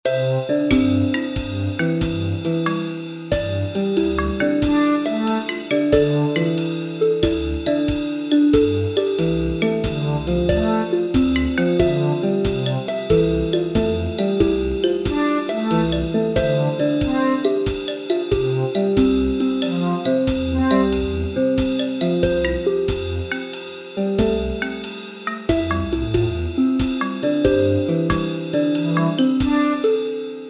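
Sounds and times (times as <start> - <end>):
background music: 0.0 - 30.4.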